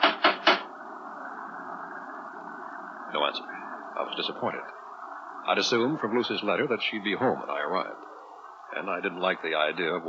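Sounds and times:
brass door knocker knocks: 0.0 - 0.6
speech: 3.1 - 4.8, 5.5 - 8.1, 8.8 - 10.0.

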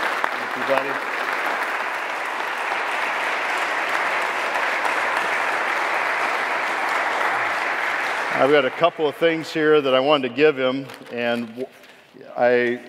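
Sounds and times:
audience applause: 0.0 - 10.0
speech: 0.6 - 1.2, 8.4 - 12.8.

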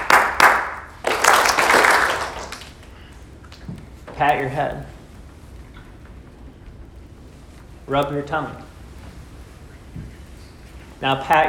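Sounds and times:
group clapping hands: 0.0 - 3.7
speech: 4.2 - 5.0, 7.9 - 8.7, 11.0 - 11.4.

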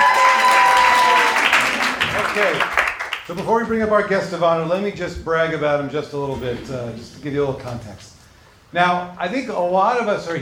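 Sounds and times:
audience applause: 0.0 - 3.3
speech: 2.4 - 10.4.

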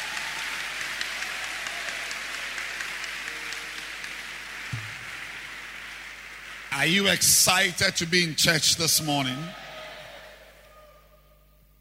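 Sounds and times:
audience hand clapping: 0.0 - 8.6
speech: 6.8 - 9.6.

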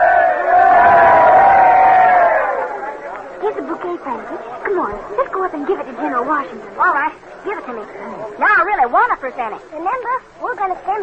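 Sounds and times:
crowd giving three cheers, hooray: 0.0 - 3.6
speech: 6.0 - 11.0.

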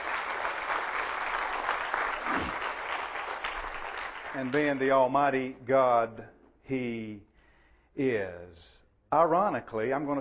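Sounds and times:
church congregation clapping as a clap offering: 0.0 - 5.1
speech: 4.4 - 7.3, 8.0 - 10.1.

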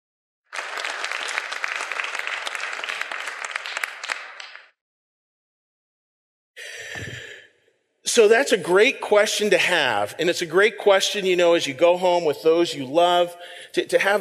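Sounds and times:
audience round of applause: 0.5 - 4.7
speech: 8.2 - 14.1.

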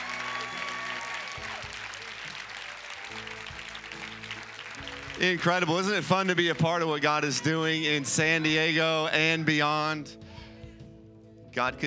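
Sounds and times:
crowd applause: 0.0 - 6.8
speech: 5.2 - 10.2, 11.6 - 11.8.

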